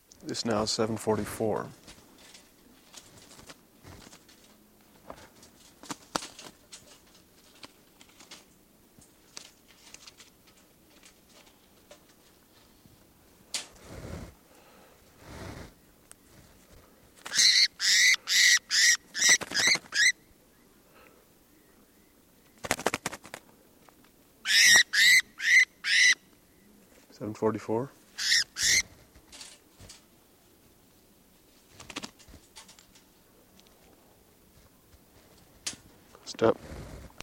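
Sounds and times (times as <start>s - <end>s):
speech: 0.2s - 1.9s, 27.6s - 28.0s
bird calls in rapid high-pitched bursts: 17.3s - 20.7s, 24.4s - 26.6s, 28.2s - 28.8s
lower throaty bird call: 17.3s - 22.2s, 24.4s - 26.8s.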